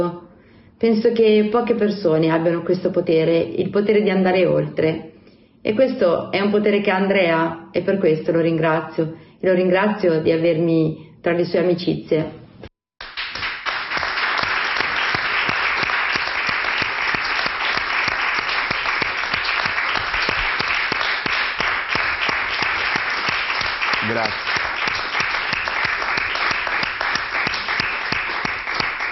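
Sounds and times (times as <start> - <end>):
speech: 0.0 - 12.4
audience applause: 13.0 - 29.1.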